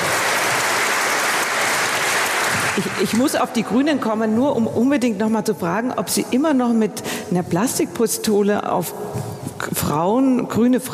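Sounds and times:
audience applause: 0.0s - 3.2s
speech: 2.8s - 10.9s.

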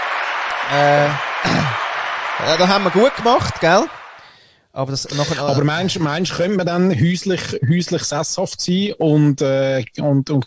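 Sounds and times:
applause: 0.0s - 4.4s
speech: 0.7s - 1.8s, 2.4s - 4.0s, 4.8s - 10.4s.

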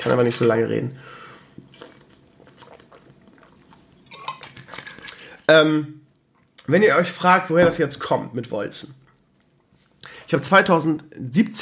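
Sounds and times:
speech: 0.0s - 1.2s, 5.5s - 6.0s, 6.7s - 9.0s, 10.3s - 11.6s
person sipping and swallowing a drink for a scratchy throat: 1.6s - 5.4s.

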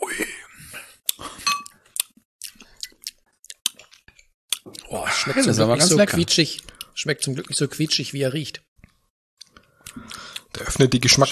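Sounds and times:
glass bottles clinking together in a toast: 1.5s - 1.7s
speech: 4.9s - 8.7s, 10.8s - 11.3s.

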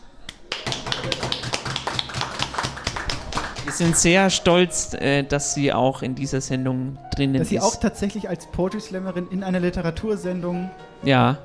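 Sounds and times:
light applause: 0.0s - 4.5s
speech: 3.8s - 11.4s.

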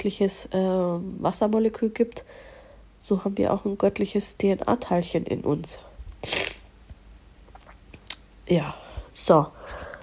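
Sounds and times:
speech: 0.0s - 6.5s, 8.5s - 9.8s
nose blowing: 6.2s - 6.7s.

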